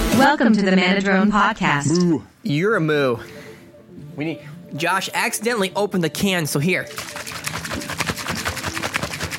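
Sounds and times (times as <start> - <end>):
speech: 0.2 - 3.4, 4.2 - 7.3
shaker bottle being shaken: 6.9 - 9.3.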